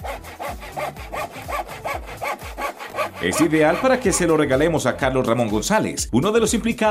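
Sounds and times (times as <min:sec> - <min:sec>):
handsaw sawing wood: 0:00.0 - 0:04.6
speech: 0:03.2 - 0:06.8.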